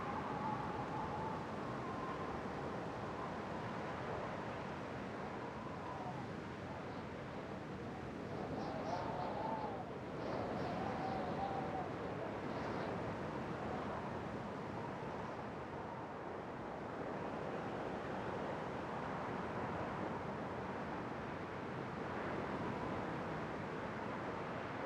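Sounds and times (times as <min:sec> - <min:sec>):
wind: 0:00.0 - 0:24.8.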